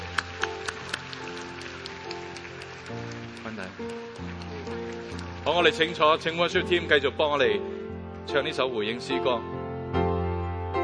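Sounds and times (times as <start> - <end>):
audience applause: 0.0 - 6.5
sustained keyboard chords: 0.0 - 10.8
speech: 3.6 - 4.3, 5.5 - 9.5.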